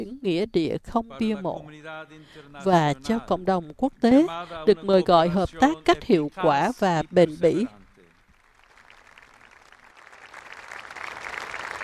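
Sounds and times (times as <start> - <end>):
speech: 0.0 - 7.8
crowd applause: 6.8 - 11.8.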